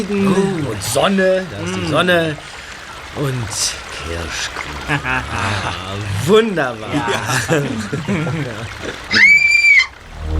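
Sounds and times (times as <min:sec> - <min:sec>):
laughter: 0:00.0 - 0:02.4, 0:03.2 - 0:09.5
speech: 0:00.0 - 0:09.3
child screaming: 0:09.1 - 0:10.0.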